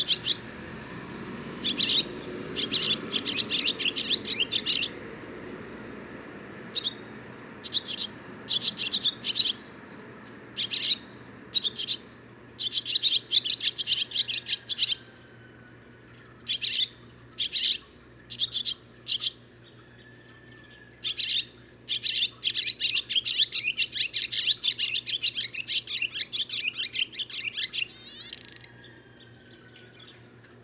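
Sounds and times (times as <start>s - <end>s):
barn swallow twittering: 0.0s - 0.4s, 1.6s - 5.0s, 6.8s - 9.6s, 10.6s - 15.1s, 16.4s - 19.8s, 20.7s - 30.3s.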